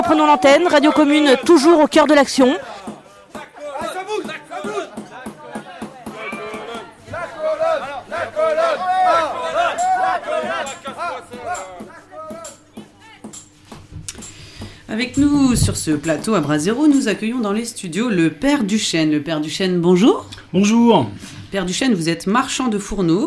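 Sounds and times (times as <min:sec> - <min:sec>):
impatient crowd singing and chanting slogans: 0:00.0 - 0:12.9
speech: 0:00.1 - 0:02.9, 0:14.9 - 0:23.2.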